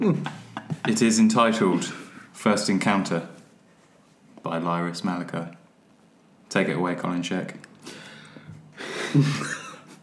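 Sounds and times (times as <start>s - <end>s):
speech: 0.0s - 3.4s, 4.4s - 5.6s, 6.5s - 8.0s, 9.1s - 9.6s
person taking a deep breath before reading aloud: 7.8s - 9.2s.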